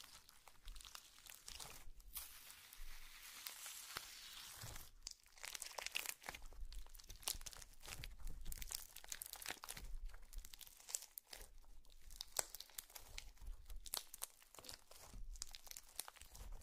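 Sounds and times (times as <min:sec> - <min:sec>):
sticky slime crackling and crinkling: 0:00.0 - 0:16.6.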